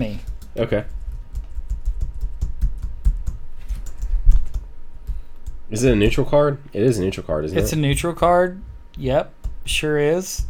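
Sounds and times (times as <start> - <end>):
speech: 0.0 - 1.0, 5.7 - 10.4
laptop keyboard typing: 0.0 - 5.6.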